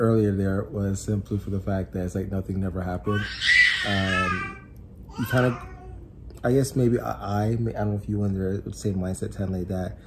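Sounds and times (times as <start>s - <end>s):
speech: 0.0s - 4.6s, 5.2s - 5.7s, 6.4s - 10.0s
baby yelling and screaming in playpen: 3.0s - 6.1s.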